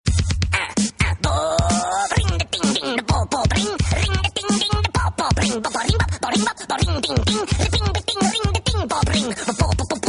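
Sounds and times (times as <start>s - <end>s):
frog hip hop music: 0.1s - 10.0s.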